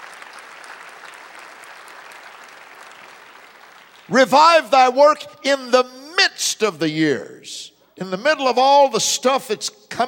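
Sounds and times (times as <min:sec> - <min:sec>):
audience applause: 0:00.0 - 0:04.1
speech: 0:04.1 - 0:10.0.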